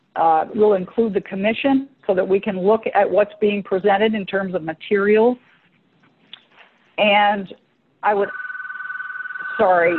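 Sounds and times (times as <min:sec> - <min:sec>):
speech: 0:00.2 - 0:05.5, 0:07.0 - 0:08.4, 0:09.6 - 0:09.9
home telephone ringing with a warbling electronic tone: 0:08.1 - 0:09.9.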